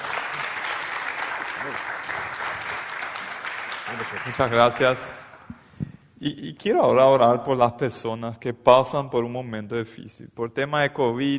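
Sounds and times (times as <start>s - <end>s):
strong applause: 0.0s - 5.5s
speech: 1.6s - 1.9s, 3.9s - 5.3s, 6.2s - 11.3s.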